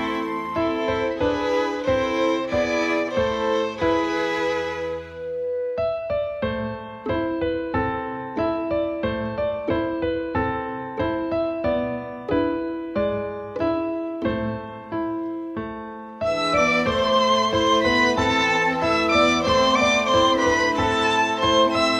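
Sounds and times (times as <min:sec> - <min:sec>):
solo piano melody: 0:00.0 - 0:21.9.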